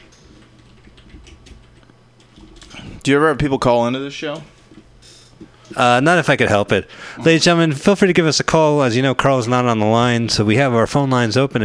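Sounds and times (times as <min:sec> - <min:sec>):
typing on a computer keyboard: 0:00.0 - 0:02.8
speech: 0:03.1 - 0:04.5, 0:05.8 - 0:11.6.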